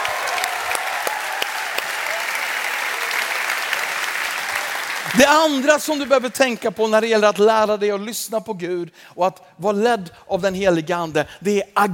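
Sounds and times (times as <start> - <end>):
audience cheering: 0.0 - 6.2
speech: 5.1 - 11.9.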